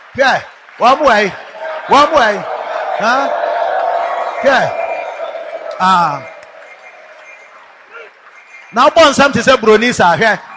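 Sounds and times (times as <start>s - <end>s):
group of people clapping hands: 0.0s - 8.6s
speech: 0.2s - 3.4s, 4.4s - 4.8s, 5.8s - 6.3s, 8.7s - 10.5s
murmuring voices: 1.4s - 8.1s.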